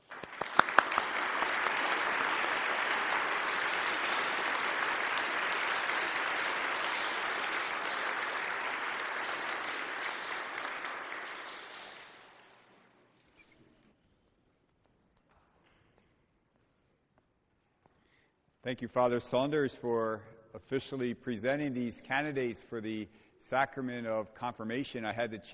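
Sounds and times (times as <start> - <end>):
audience applause: 0.0 - 12.6
speech: 18.6 - 25.5.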